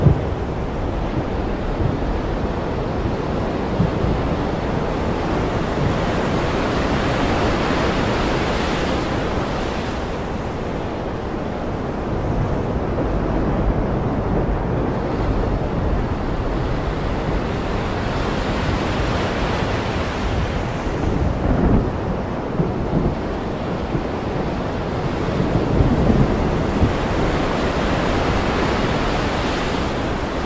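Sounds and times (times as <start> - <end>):
stormy ocean: 0.0 - 30.4.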